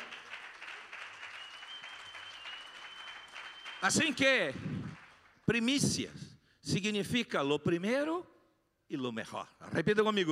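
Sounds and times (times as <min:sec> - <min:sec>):
audience applause: 0:00.0 - 0:05.4
speech: 0:03.8 - 0:04.8, 0:05.5 - 0:08.3, 0:08.9 - 0:10.3.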